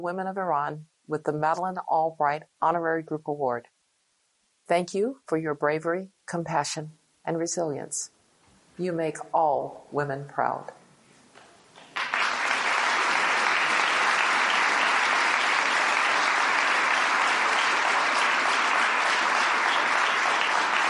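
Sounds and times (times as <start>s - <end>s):
speech: 0.0s - 3.8s, 4.7s - 8.2s, 8.8s - 10.8s
audience applause: 11.8s - 20.8s.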